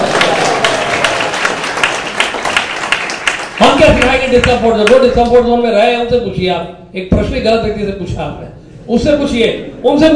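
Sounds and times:
audience applauding a person honoured for distributing religious texts: 0.0s - 5.0s
speech: 3.9s - 10.1s.

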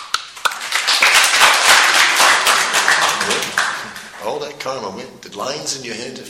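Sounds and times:
hands clapping: 0.0s - 4.3s
speech: 4.6s - 6.2s.

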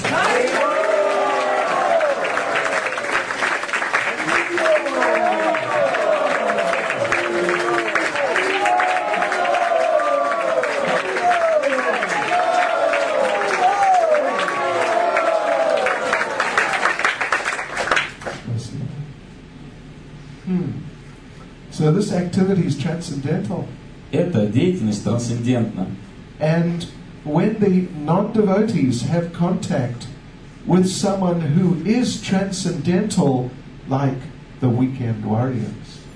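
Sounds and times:
audience applause: 0.0s - 18.4s
speech: 22.4s - 26.9s, 27.6s - 30.1s, 30.7s - 35.9s.

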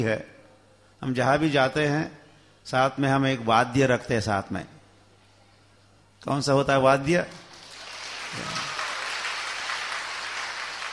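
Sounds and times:
speech: 0.0s - 0.4s, 1.0s - 4.8s, 6.2s - 7.4s, 8.3s - 8.8s
audience clapping at a religious discourse on kirtan: 7.3s - 10.9s.

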